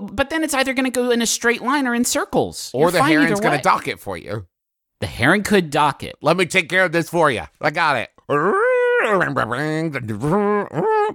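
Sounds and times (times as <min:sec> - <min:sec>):
speech: 0:00.1 - 0:11.1
person vocally imitating boat sounds: 0:08.3 - 0:11.1.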